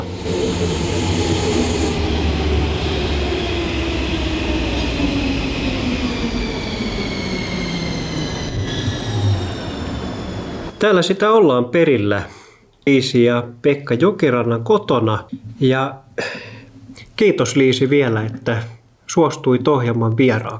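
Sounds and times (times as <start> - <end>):
metro train wheels grinding and squealing on rails: 0.0 - 10.8
speech: 0.6 - 1.4, 10.8 - 16.5, 17.2 - 20.5.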